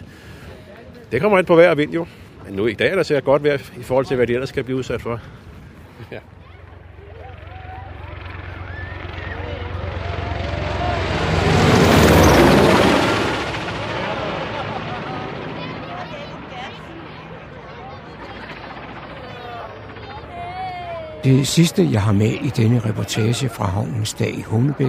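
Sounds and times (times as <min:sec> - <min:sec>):
rescue helicopter flying over a harbour: 0:00.0 - 0:24.8
speech: 0:01.1 - 0:05.4, 0:06.0 - 0:06.4, 0:21.2 - 0:24.8.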